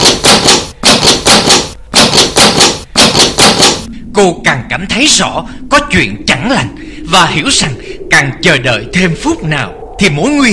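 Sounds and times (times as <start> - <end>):
hard banging on a hall door: 0.0 - 3.9
speech: 4.2 - 10.5.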